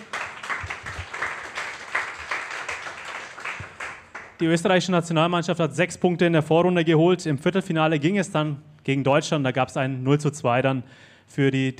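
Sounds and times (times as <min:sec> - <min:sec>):
audience applause: 0:00.0 - 0:04.4
speech: 0:04.4 - 0:11.7.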